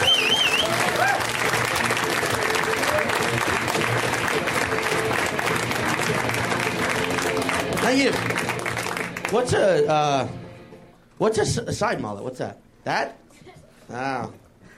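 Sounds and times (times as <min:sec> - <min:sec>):
whoops and cheers: 0:00.0 - 0:01.6, 0:02.4 - 0:03.3
sustained applause from a large audience welcoming a comic: 0:00.0 - 0:09.7
speech: 0:09.4 - 0:10.4, 0:11.2 - 0:13.2, 0:13.9 - 0:14.4.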